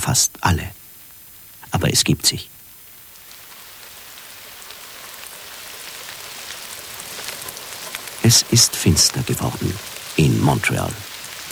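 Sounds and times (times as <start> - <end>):
speech: 0.0 - 0.8, 1.7 - 2.6, 8.3 - 11.5
steady rain pattering on a surface: 0.0 - 11.5.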